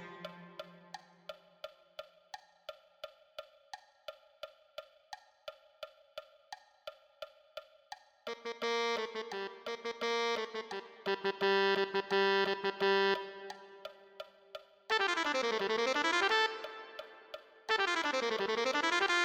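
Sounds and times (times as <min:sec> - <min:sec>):
tenor saxophone: 0:00.0 - 0:00.9, 0:08.3 - 0:13.9, 0:14.9 - 0:19.2.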